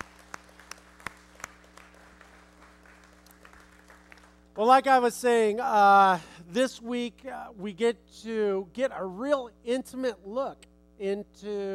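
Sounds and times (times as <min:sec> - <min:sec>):
audience applause: 0:00.0 - 0:04.5
speech: 0:04.6 - 0:11.7.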